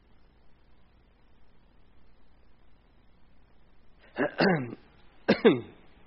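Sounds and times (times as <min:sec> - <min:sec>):
person coughing and choking while drinking: 0:04.1 - 0:05.8.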